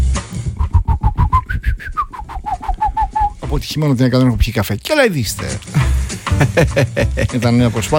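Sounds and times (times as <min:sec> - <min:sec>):
soft low thumps: 0:00.5 - 0:03.6
person imitating small birds with whistled chirps: 0:00.6 - 0:03.4
speech: 0:03.5 - 0:05.8, 0:06.4 - 0:07.9
laughter: 0:06.1 - 0:07.6.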